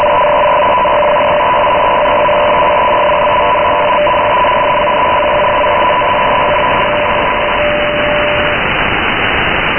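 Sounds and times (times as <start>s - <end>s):
tones on 9200 kHz: 0.0s - 8.8s.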